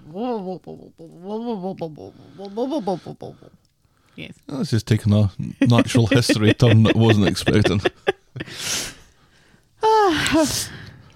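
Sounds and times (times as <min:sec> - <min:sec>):
speech: 0:00.1 - 0:03.6, 0:04.2 - 0:09.0, 0:10.1 - 0:10.8
laughter: 0:05.6 - 0:08.6
person sniffing from allergies: 0:08.4 - 0:09.1.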